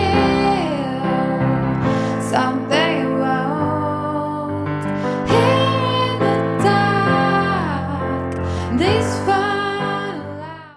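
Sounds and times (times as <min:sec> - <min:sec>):
piano: 0:00.0 - 0:10.7
woman singing: 0:00.0 - 0:10.7.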